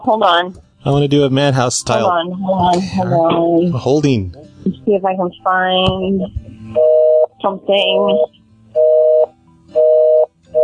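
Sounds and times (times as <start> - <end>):
speech: 0.0 - 8.4
telephone busy signal: 6.8 - 7.3, 8.0 - 10.6.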